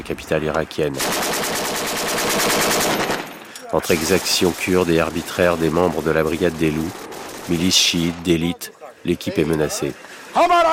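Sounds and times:
speech: 0:00.1 - 0:01.6, 0:03.7 - 0:10.6
rapid automatic gunfire: 0:01.0 - 0:08.2.

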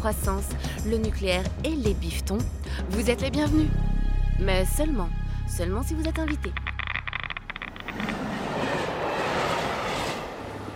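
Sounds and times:
speech: 0:00.0 - 0:06.6
train rolling roar at Le Bourget railway station: 0:07.5 - 0:10.7.

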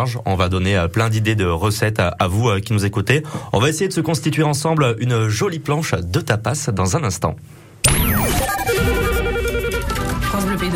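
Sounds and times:
speech: 0:00.0 - 0:08.4
electronic telephone ring for a listener call: 0:07.9 - 0:10.1.

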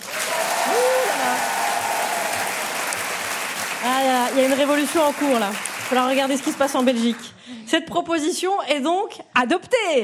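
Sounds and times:
audience applause as a vote: 0:00.0 - 0:07.3
speech: 0:03.9 - 0:10.0.

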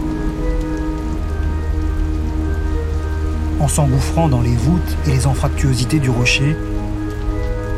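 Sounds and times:
storm rain: 0:00.0 - 0:07.7
storm wind: 0:00.0 - 0:07.7
speech: 0:03.7 - 0:06.7.

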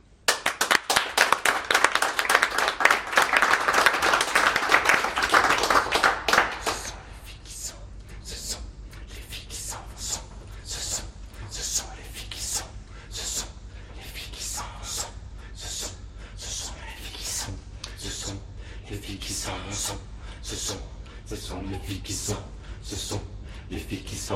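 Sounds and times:
audience applauding: 0:00.3 - 0:06.9.

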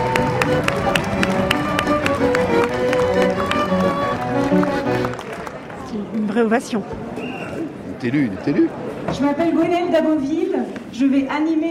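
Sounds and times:
audience applauding in a theatre: 0:00.0 - 0:05.9
speech: 0:06.4 - 0:07.1, 0:08.0 - 0:11.6.

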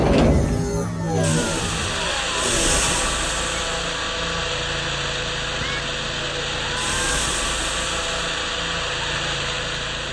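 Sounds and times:
pneumatic door clunk: 0:00.0 - 0:01.3
pneumatic door slowly opening with hiss of air: 0:00.0 - 0:03.4
low mechanical hum: 0:00.0 - 0:10.1.

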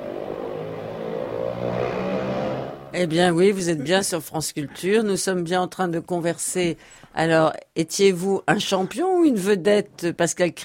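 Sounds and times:
small go-kart engines revving: 0:00.0 - 0:02.9
speech: 0:03.0 - 0:10.6.

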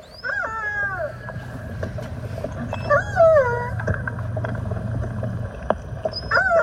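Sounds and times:
steady low droning hum: 0:00.0 - 0:06.6
young two-year-old male orca calf calling for its mother, hydrophone recording: 0:00.1 - 0:01.7, 0:02.6 - 0:04.0.

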